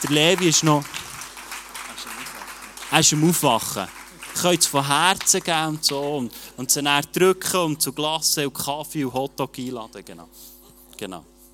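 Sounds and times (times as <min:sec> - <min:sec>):
soft applause from an audience: 0:00.0 - 0:06.4
speech: 0:00.1 - 0:01.0, 0:02.9 - 0:11.3.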